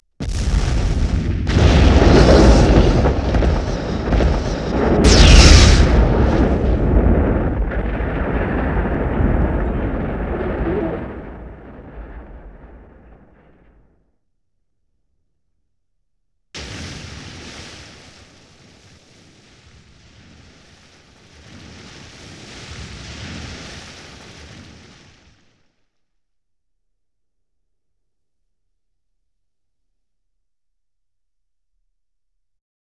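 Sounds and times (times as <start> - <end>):
explosion: 0.2 - 14.0, 16.6 - 25.7.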